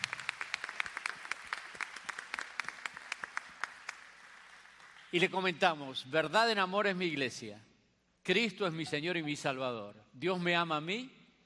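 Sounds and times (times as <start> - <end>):
audience applause: 0.0 - 5.5
speech: 5.1 - 11.2.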